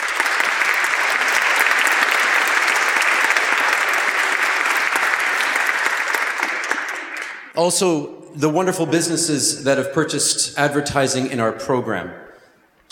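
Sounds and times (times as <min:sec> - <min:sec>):
audience applause: 0:00.0 - 0:07.5
speech: 0:07.6 - 0:12.3.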